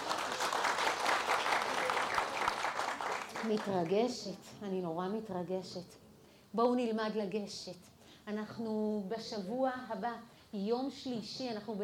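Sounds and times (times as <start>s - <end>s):
audience applause for a woman being praised: 0.0s - 3.7s
speech: 3.4s - 11.8s.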